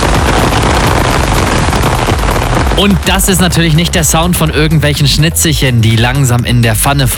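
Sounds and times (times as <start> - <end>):
heavy summer rain pouring down: 0.0 - 6.5
speech: 2.8 - 7.1.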